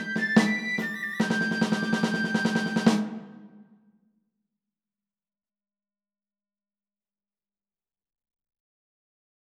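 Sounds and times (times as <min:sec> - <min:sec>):
march music: 0:00.0 - 0:03.6.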